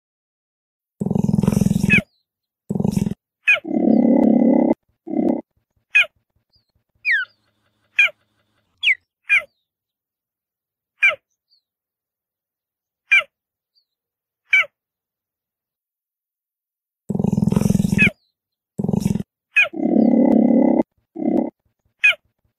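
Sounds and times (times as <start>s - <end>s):
cheetah sounds mix: 1.0s - 2.1s, 2.7s - 9.5s, 17.1s - 18.2s, 18.8s - 22.5s.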